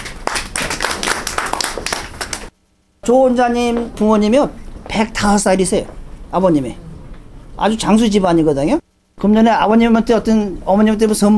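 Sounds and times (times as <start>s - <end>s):
audience clapping: 0.0s - 2.5s
speech: 3.1s - 6.8s, 7.6s - 11.3s.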